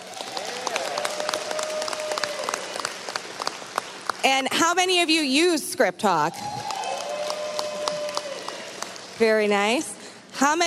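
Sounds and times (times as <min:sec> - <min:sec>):
audience clapping in response to question: 0:00.0 - 0:04.6, 0:06.5 - 0:09.7
speech: 0:04.2 - 0:06.6, 0:09.2 - 0:10.6.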